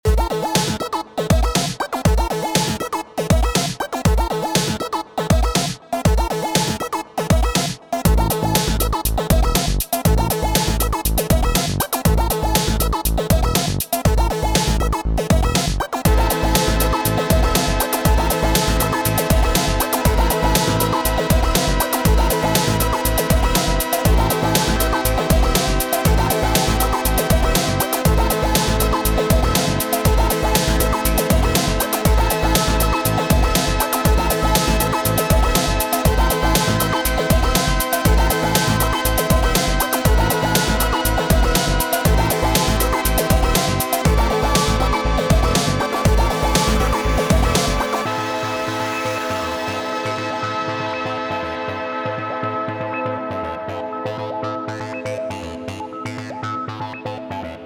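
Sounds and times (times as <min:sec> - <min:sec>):
acid experimental loop: 0:00.0 - 0:57.6.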